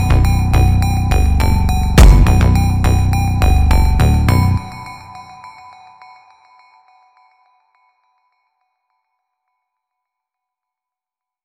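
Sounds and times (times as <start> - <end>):
slowed reverb music: 1.1 - 5.0.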